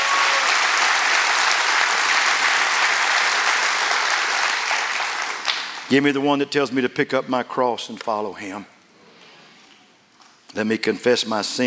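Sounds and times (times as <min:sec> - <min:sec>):
audience clapping hands: 0:00.0 - 0:05.9
speech: 0:05.9 - 0:08.8, 0:10.5 - 0:11.6.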